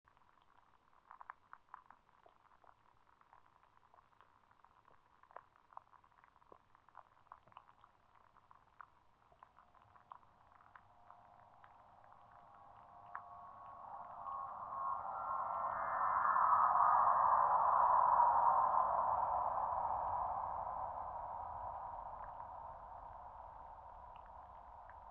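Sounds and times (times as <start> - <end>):
airplane noise: 10.9 - 25.1.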